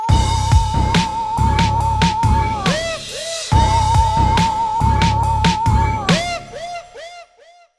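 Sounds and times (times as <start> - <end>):
aggressive bass drop: 0.1 - 6.9.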